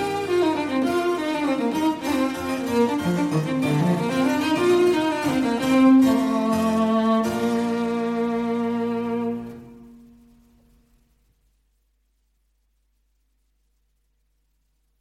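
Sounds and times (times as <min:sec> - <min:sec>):
cello sonata in B-flat major: 0:00.0 - 0:10.3.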